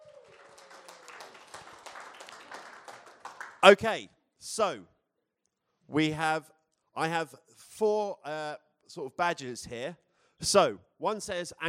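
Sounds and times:
audience applause: 0.0 - 3.6
speech: 3.6 - 4.9, 5.9 - 11.6.

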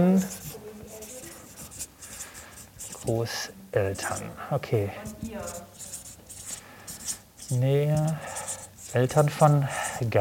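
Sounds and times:
speech: 0.0 - 0.4, 3.0 - 5.7, 7.5 - 10.1
handwriting on paper: 0.2 - 10.1.

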